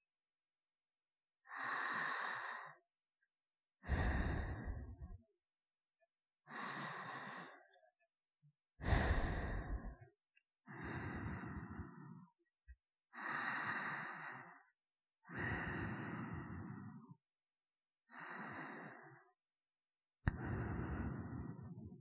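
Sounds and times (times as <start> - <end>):
sleeping breathing: 1.5 - 2.8, 3.8 - 5.2, 6.5 - 7.8, 8.8 - 10.0, 10.7 - 12.3, 13.1 - 14.7, 15.3 - 17.2, 18.1 - 19.4, 20.3 - 21.9.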